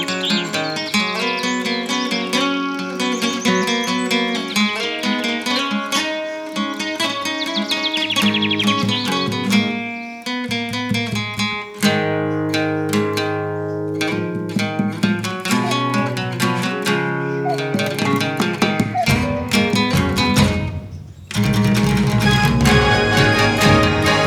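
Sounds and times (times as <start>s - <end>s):
medieval acoustic guitar music: 0.0s - 24.2s.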